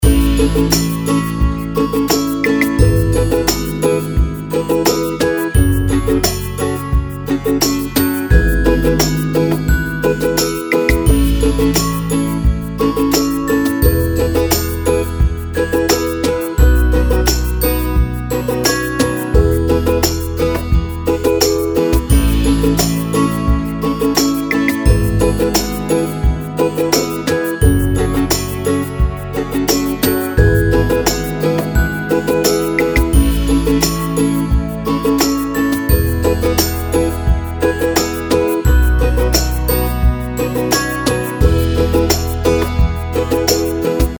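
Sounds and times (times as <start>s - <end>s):
happy menu music loop: 0.0s - 44.1s.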